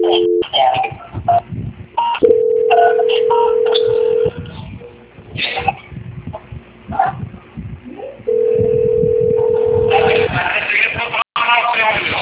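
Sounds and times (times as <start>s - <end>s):
unanswered telephone call ringing over a tinny phone line: 0.0s - 0.4s, 2.2s - 4.4s, 8.3s - 10.2s
people talking: 0.0s - 1.3s, 2.7s - 8.4s, 9.4s - 12.2s.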